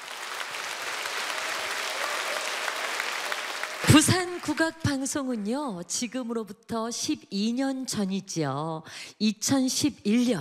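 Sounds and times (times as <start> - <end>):
audience applauding after a dance performance: 0.0 - 5.4
speech: 3.8 - 10.3.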